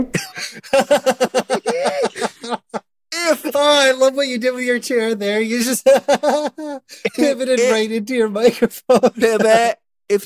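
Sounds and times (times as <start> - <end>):
laughter: 0.1 - 3.7, 5.5 - 7.8, 8.5 - 9.7
vocal imitation of an orgasm sound: 1.6 - 2.6
speech: 4.1 - 10.2.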